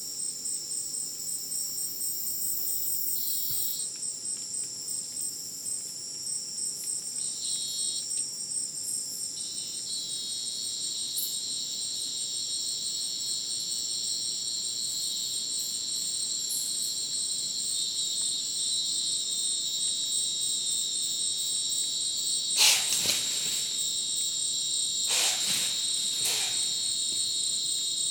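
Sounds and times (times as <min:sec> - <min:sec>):
cricket chorus: 0:00.0 - 0:28.0
broadband rustling bursts: 0:22.6 - 0:24.1, 0:25.1 - 0:27.2.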